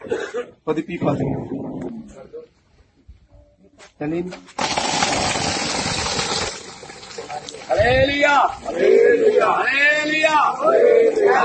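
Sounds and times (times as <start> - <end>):
speech: 0.1 - 2.4, 4.0 - 5.7, 7.5 - 11.4
borewell pump motor running: 4.6 - 8.3.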